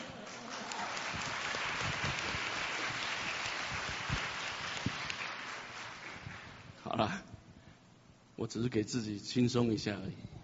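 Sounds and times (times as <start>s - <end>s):
audience applause: 0.0s - 6.6s
speech: 7.0s - 7.3s, 8.4s - 10.4s.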